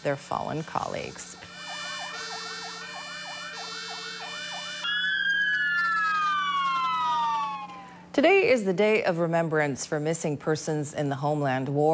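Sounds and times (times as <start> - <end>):
speech: 0.0 - 1.5, 8.2 - 11.9
fire department sirens wailing: 0.5 - 8.1.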